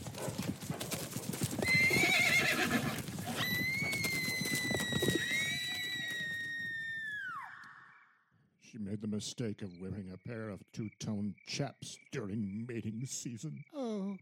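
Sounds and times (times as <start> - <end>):
hooves of a herd of palomino horses thudding: 0.0 - 6.8
palomino horse whinnying: 1.6 - 7.9
speech: 9.2 - 14.2.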